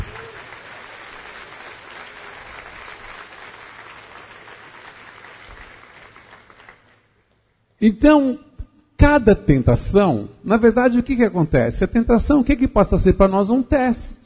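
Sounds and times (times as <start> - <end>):
audience applauding: 0.0 - 7.1
speech: 7.8 - 8.4, 9.0 - 14.2.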